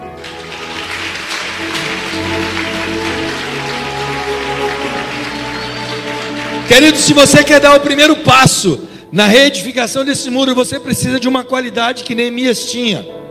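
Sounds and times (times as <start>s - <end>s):
audience applauding: 0.0s - 8.3s
speech: 6.7s - 13.2s.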